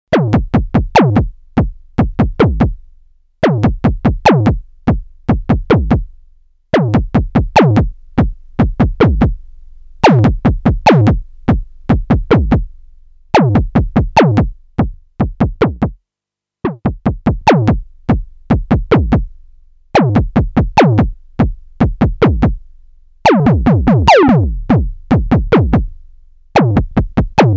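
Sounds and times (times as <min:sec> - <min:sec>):
tonal kick drum trigger: 0:00.2 - 0:02.8, 0:03.4 - 0:06.1, 0:06.8 - 0:09.4, 0:10.0 - 0:12.7, 0:13.4 - 0:16.0, 0:16.7 - 0:19.3, 0:20.0 - 0:22.6, 0:23.4 - 0:25.9, 0:26.6 - 0:27.5.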